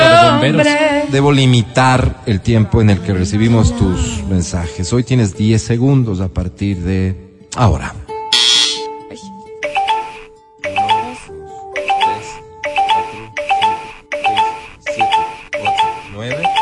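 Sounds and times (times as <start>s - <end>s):
speech: 0.4s - 8.1s
electronic ding-dong chime signalling time is up: 9.6s - 16.6s.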